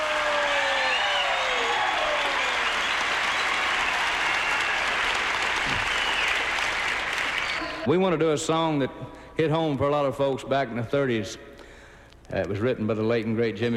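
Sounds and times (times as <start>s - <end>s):
audience applause: 0.0s - 7.9s
faint whistles: 0.8s - 4.9s, 5.6s - 6.5s
speech: 7.9s - 11.5s, 12.3s - 13.7s.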